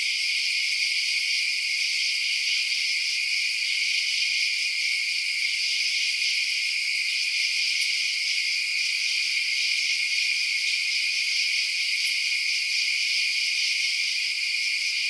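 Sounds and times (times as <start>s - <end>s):
insects at night: 0.0s - 15.0s.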